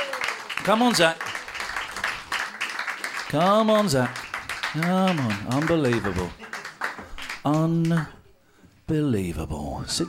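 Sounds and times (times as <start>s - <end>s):
person cheering loudly: 0.0s - 0.5s
audience applause: 0.0s - 8.2s
speech: 0.7s - 1.2s, 3.3s - 6.4s, 7.4s - 8.2s, 8.9s - 10.0s.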